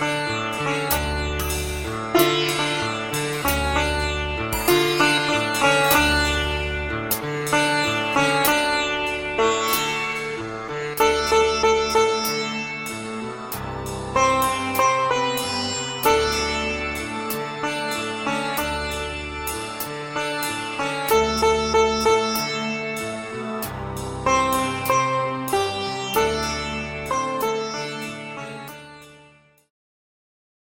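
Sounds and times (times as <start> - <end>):
modelled sitar recorded binaurally: 0.0 - 29.7.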